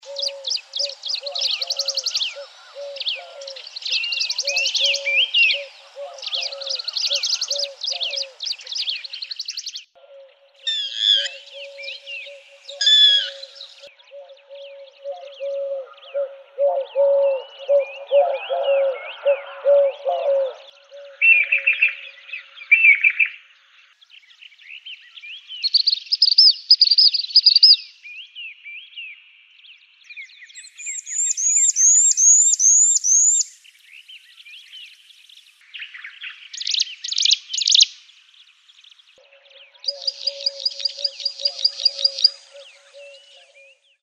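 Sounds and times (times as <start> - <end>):
birds in grassland and scrubland: 0.0 - 44.0.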